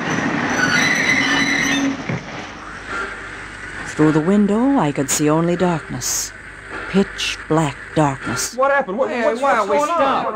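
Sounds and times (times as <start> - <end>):
train brakes screeching to a stop: 0.0 - 4.3
rumbling rail roar: 0.0 - 10.3
speech: 4.0 - 10.3.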